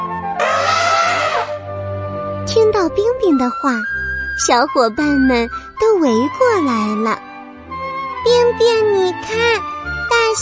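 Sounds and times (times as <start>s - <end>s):
elephant trumpeting call: 0.4s - 1.6s
speech: 2.6s - 7.3s, 8.2s - 10.3s.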